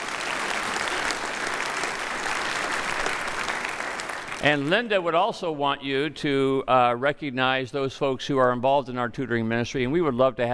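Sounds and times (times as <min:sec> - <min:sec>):
audience round of applause: 0:00.0 - 0:04.8
speech: 0:04.4 - 0:10.5.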